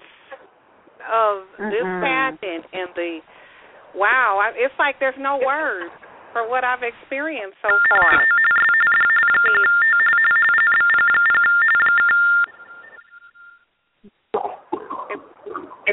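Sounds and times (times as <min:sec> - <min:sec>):
speech: 0:01.1 - 0:08.3
phone ringing: 0:07.7 - 0:13.7.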